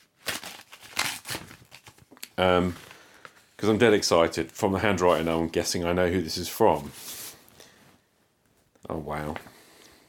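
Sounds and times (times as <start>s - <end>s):
paper envelope being ripped open: 0.0s - 2.0s
speech: 2.4s - 2.9s, 3.6s - 7.0s, 9.0s - 9.5s.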